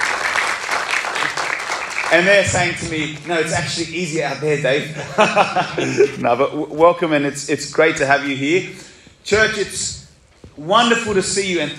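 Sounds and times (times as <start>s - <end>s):
audience applause: 0.0s - 3.5s
speech: 2.1s - 10.0s, 10.6s - 11.7s
laughter: 4.4s - 6.8s.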